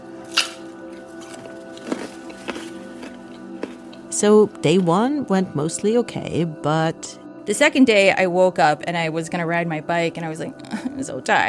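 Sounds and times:
chewing crunchy baby carrots: 0.2s - 4.1s
speech: 4.2s - 11.4s.

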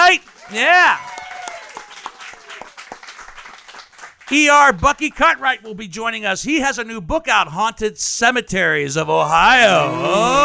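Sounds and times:
audience applause: 0.0s - 4.8s, 9.8s - 10.4s
speech: 0.1s - 1.1s, 4.3s - 10.4s.

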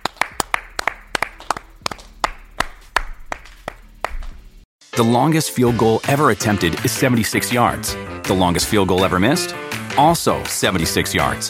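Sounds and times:
hands clapping: 0.0s - 4.6s
speech: 5.0s - 11.4s.

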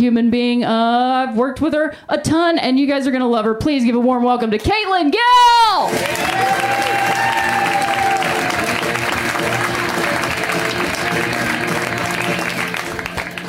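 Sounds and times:
speech: 0.0s - 7.5s
audience clapping in unison: 5.8s - 13.4s.

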